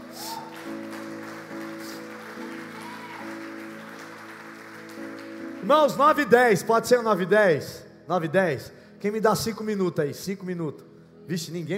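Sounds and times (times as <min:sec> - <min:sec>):
audience applause: 0:00.0 - 0:06.0
sustained keyboard chords: 0:00.0 - 0:11.7
speech: 0:05.6 - 0:11.7.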